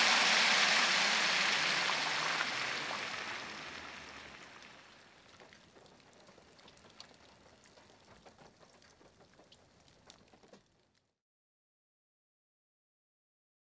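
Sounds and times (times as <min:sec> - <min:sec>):
driving on wet road: 0:00.0 - 0:06.9.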